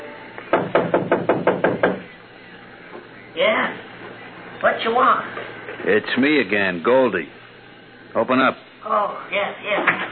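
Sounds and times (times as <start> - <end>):
knocking on a door: 0.5 - 2.1
speech: 4.8 - 7.4, 8.1 - 10.0.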